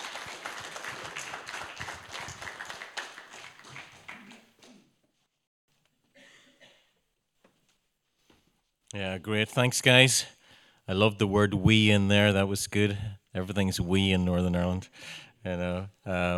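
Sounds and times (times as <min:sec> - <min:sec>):
audience round of applause: 0:00.0 - 0:04.6
speech: 0:09.0 - 0:16.3.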